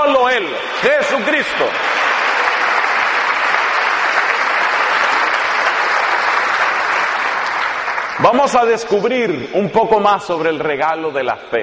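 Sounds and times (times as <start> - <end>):
audience applause: 0.0 - 8.9
speech: 0.4 - 2.1, 8.2 - 11.6.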